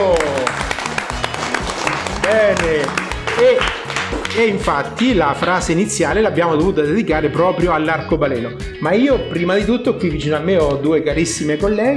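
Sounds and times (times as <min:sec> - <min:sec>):
applause: 0:00.0 - 0:05.2
speech: 0:04.4 - 0:11.9.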